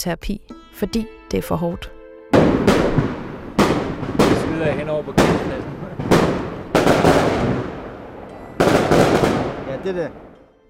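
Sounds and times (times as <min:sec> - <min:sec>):
speech: 0:00.0 - 0:03.1, 0:04.6 - 0:05.7, 0:09.8 - 0:10.2
fireworks at a Kosovo wedding celebration at a hotel: 0:02.4 - 0:10.4.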